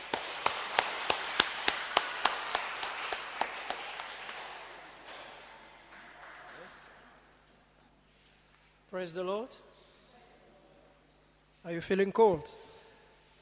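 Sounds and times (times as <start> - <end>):
congregation clapping to welcome a pastor at a church service: 0.0 - 7.5
speech: 9.0 - 9.7, 11.6 - 12.7.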